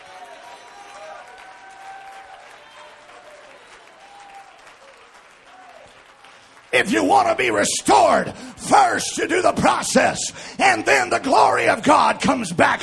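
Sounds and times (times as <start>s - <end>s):
raised voices and cheering: 0.0s - 6.1s, 6.8s - 12.8s
crowd clapping: 0.0s - 9.0s
speech: 6.7s - 12.8s.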